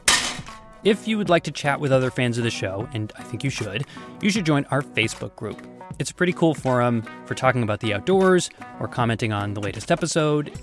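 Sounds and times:
small piece of ginger striking a tin domino box lid: 0:00.0 - 0:00.6
speech: 0:00.8 - 0:10.6.

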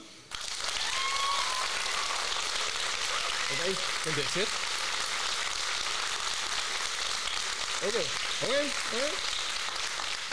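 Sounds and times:
audience clapping to vote: 0:00.3 - 0:10.3
faint whistle or cheer: 0:00.7 - 0:02.2
speech: 0:03.6 - 0:04.7, 0:07.8 - 0:09.4.

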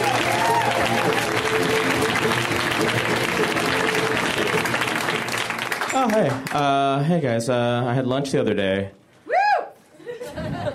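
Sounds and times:
audience applause in a comedy club for a comedian: 0:00.0 - 0:06.8
speech: 0:06.0 - 0:09.0
laughter: 0:10.0 - 0:10.7.

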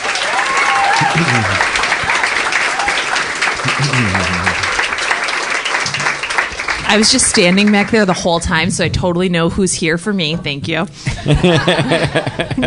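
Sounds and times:
audience applause greeting a guest coming on stage: 0:00.0 - 0:08.6
voices calling out: 0:00.9 - 0:02.0, 0:03.6 - 0:04.7
laughter: 0:01.0 - 0:02.2, 0:03.6 - 0:04.8, 0:11.0 - 0:12.6
speech: 0:01.2 - 0:01.8, 0:03.6 - 0:04.6, 0:06.9 - 0:12.6.

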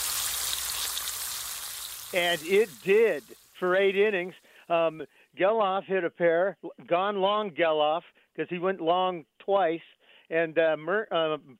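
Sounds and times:
bacon sizzling in a pan: 0:00.0 - 0:04.4
speech: 0:02.1 - 0:11.5.

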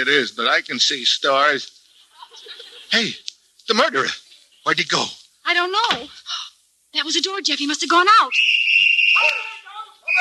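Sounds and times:
speech: 0:00.0 - 0:01.8, 0:02.4 - 0:08.6
laughter: 0:02.0 - 0:03.3
police whistles blowing: 0:08.3 - 0:10.1.

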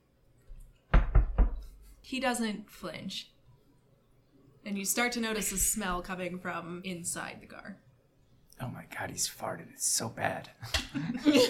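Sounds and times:
knocking on a van window: 0:00.9 - 0:01.6
speech: 0:02.0 - 0:03.3, 0:04.6 - 0:07.8, 0:08.6 - 0:11.4
laughter: 0:10.7 - 0:11.4.

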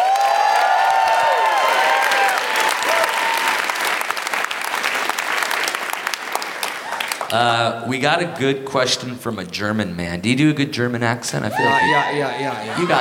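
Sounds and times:
audience applause: 0:00.0 - 0:07.4
speech: 0:07.3 - 0:12.9
laughter: 0:11.5 - 0:12.9.

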